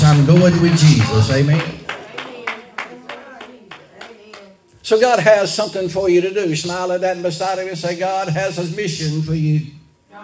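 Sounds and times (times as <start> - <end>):
congregation hand clapping in praise: 0.0 - 4.6
speech: 0.2 - 1.8, 4.9 - 10.2.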